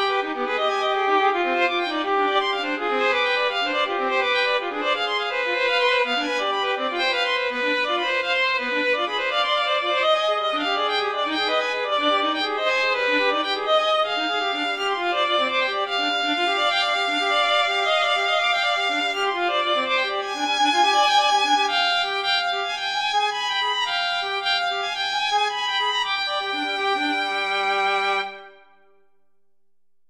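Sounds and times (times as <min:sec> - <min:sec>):
violin duo playing a nocturne: 0:00.0 - 0:28.8.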